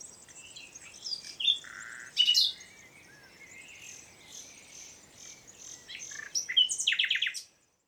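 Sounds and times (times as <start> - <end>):
common nightingale song: 0.0 - 7.5.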